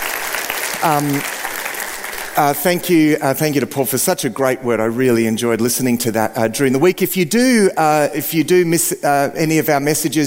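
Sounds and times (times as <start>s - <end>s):
audience round of applause: 0.0s - 3.2s
speech: 0.8s - 1.4s, 2.4s - 10.2s.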